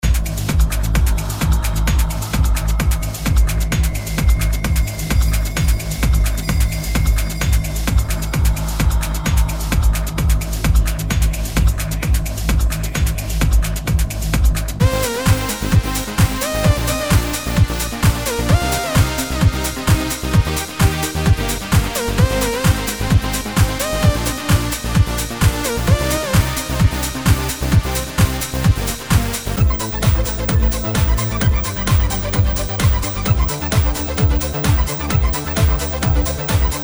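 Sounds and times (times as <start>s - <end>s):
trance music: 0.0s - 36.8s.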